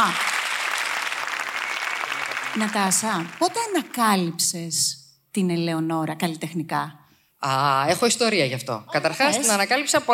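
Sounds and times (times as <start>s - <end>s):
speech: 0.0s - 0.3s, 2.6s - 10.1s
audience applause: 0.0s - 4.1s.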